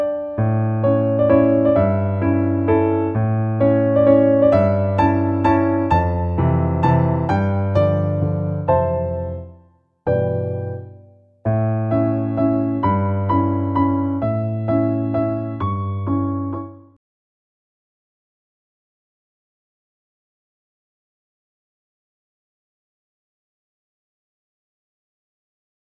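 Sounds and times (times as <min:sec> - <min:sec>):
relaxing music: 0:00.0 - 0:17.0.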